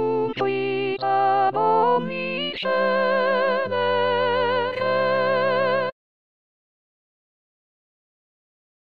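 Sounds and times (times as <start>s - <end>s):
soprano singing: 0.0s - 6.0s.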